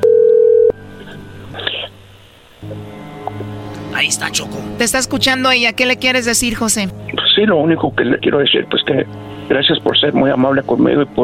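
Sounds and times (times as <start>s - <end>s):
telephone dialing tones: 0.0s - 0.7s
low electrical hum: 0.0s - 11.2s
speech: 4.0s - 11.2s.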